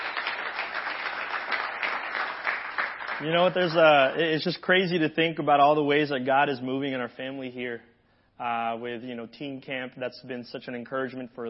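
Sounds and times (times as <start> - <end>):
audience applause: 0.0 - 3.9
speech: 3.2 - 11.4.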